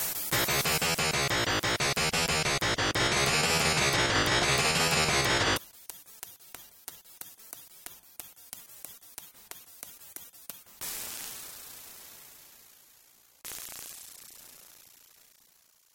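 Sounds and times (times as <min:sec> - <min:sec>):
game win ending music: 0:00.3 - 0:05.6.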